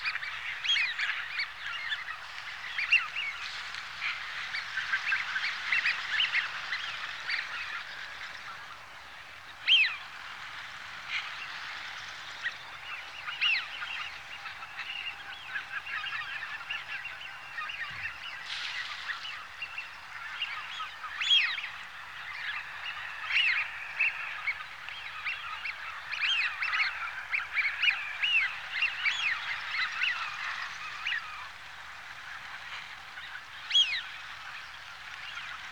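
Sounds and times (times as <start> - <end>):
large flock of wigeon Anas penelope: 0.0 - 35.7.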